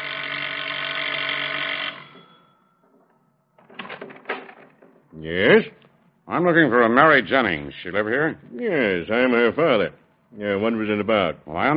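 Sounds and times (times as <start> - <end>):
doorbell ringing at front door: 0.0 - 3.5
speech: 5.2 - 11.7.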